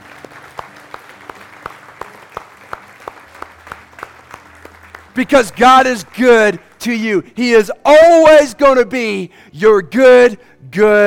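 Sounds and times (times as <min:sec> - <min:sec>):
audience applause: 0:00.0 - 0:07.2
speech: 0:05.2 - 0:11.0.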